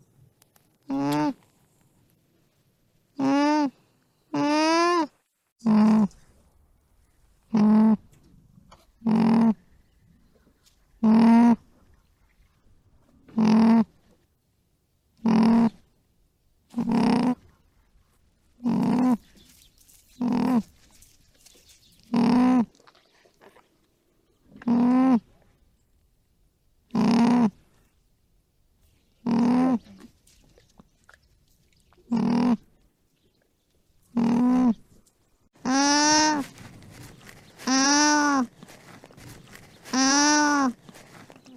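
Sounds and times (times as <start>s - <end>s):
alpaca vocalizing: 0.9s - 1.4s, 3.2s - 6.2s, 7.5s - 8.1s, 9.0s - 9.6s, 11.0s - 11.8s, 13.2s - 14.0s, 15.2s - 15.9s, 16.7s - 17.5s, 18.6s - 19.3s, 20.2s - 20.8s, 22.0s - 23.6s, 24.5s - 25.5s, 26.9s - 27.6s, 29.2s - 30.1s, 32.0s - 32.8s, 34.1s - 34.8s, 35.6s - 36.6s, 37.6s - 38.7s, 39.6s - 41.5s.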